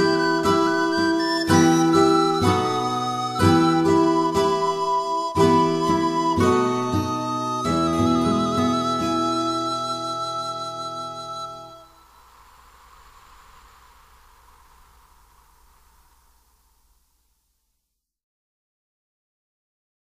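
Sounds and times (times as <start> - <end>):
instrumental music: 0.0 - 12.0.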